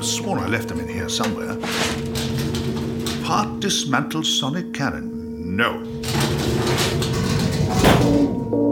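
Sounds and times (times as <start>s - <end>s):
speech: 0.0s - 2.4s, 3.3s - 7.0s
rattling clatter: 1.1s - 3.7s, 5.8s - 8.6s.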